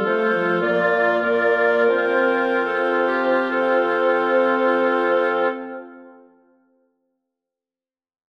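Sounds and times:
woodwind quintet playing: 0.0 - 6.4.

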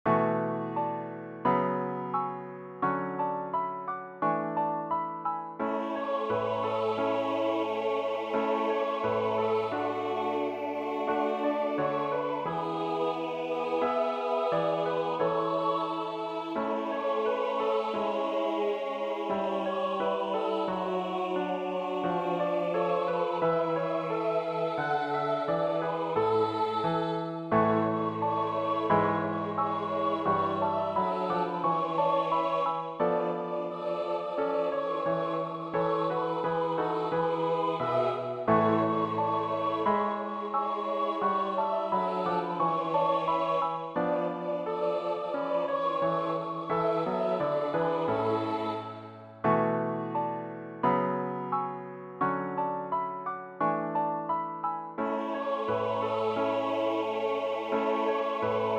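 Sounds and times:
Christmas song: 0.0 - 58.7.

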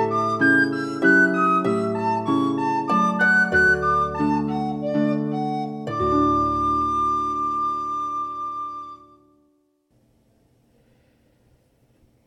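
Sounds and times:
harp: 0.0 - 9.5
flute: 0.0 - 9.6.

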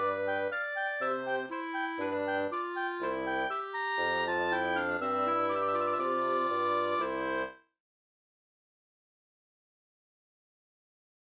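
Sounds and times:
trio playing in C major: 0.0 - 7.5.

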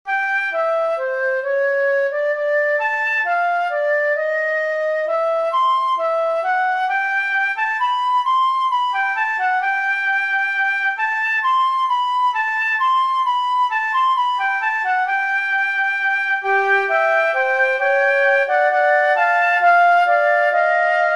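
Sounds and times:
trio playing a canon: 0.1 - 21.1.

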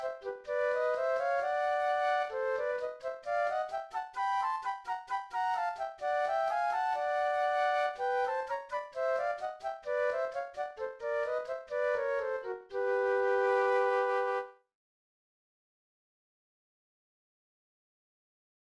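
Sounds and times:
two flutes playing a chromatic study: 0.0 - 14.6.

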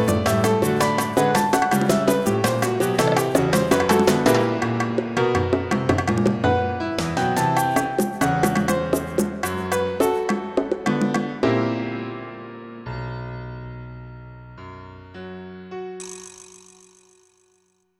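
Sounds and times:
percussion for piano: 0.0 - 11.6, 16.0 - 17.8.

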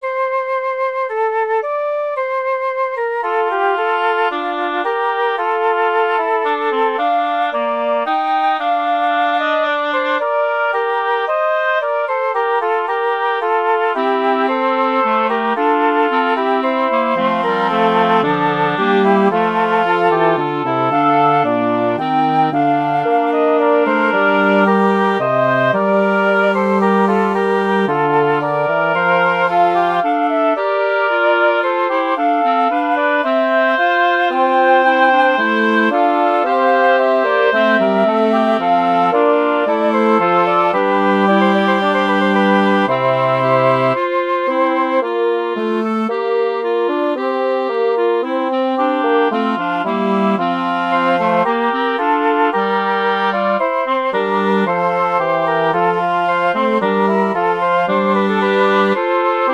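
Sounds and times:
woodwind quartet playing a ricercare: 0.0 - 59.5.

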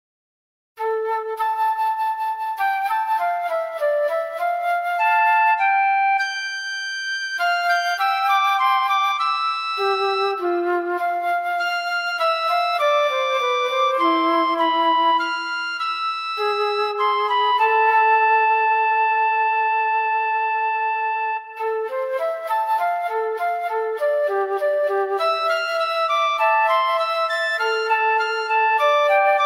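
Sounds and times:
flute and piccolo duet in A: 0.8 - 29.4.

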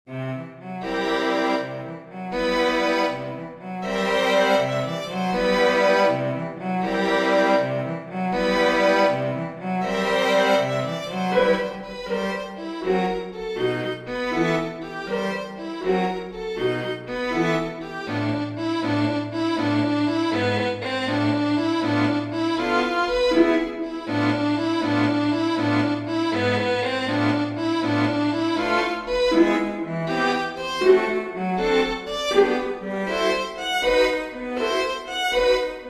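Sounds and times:
string quintet playing: 0.1 - 35.8.

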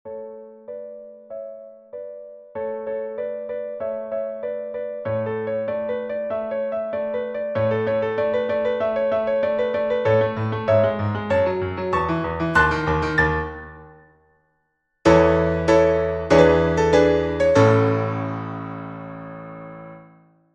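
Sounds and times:
allegro classical piece: 5.2 - 14.0, 15.1 - 19.9.

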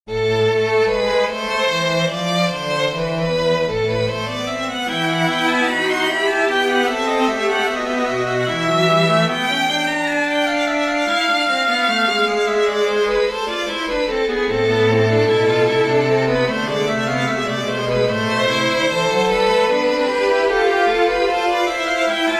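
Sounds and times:
string trio playing: 0.1 - 22.3.

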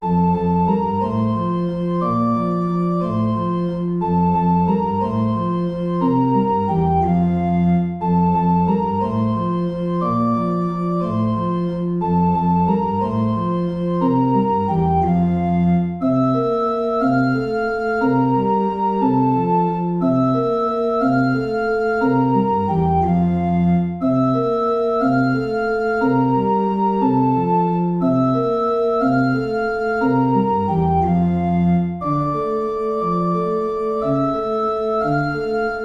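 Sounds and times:
waltz music: 0.0 - 35.8.

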